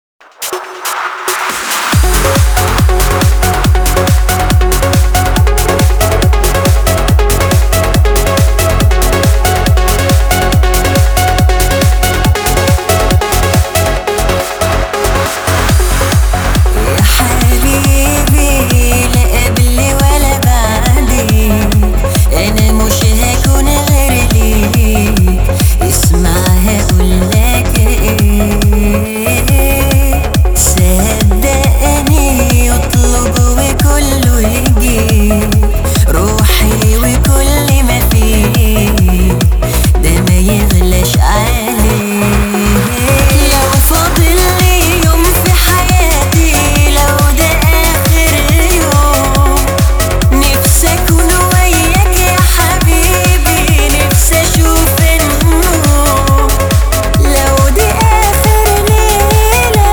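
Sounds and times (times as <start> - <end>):
remix bass: 0.0 - 59.9.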